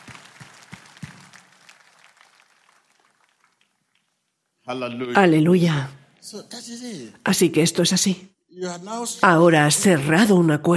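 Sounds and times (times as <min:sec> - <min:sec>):
audience applause: 0:00.0 - 0:04.3
speech: 0:04.7 - 0:10.7.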